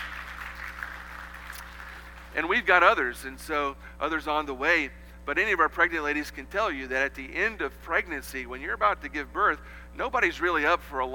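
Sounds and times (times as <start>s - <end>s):
audience applause: 0.0s - 2.4s
low electrical hum: 0.0s - 11.1s
speech: 2.4s - 11.1s.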